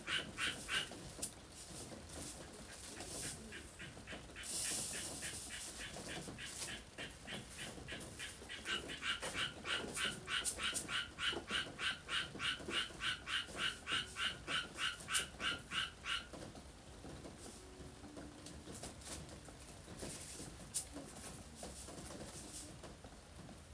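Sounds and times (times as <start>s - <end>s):
frogs croaking: 0.0s - 1.0s, 2.7s - 16.5s
birds calling: 0.0s - 1.3s, 2.4s - 16.6s
faint radio: 2.1s - 16.2s, 17.0s - 23.1s.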